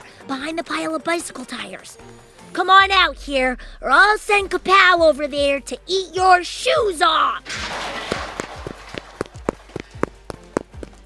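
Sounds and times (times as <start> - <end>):
speech: 0.3 - 7.7
footsteps of someone in a yellow hazmat suit running past: 8.1 - 11.0.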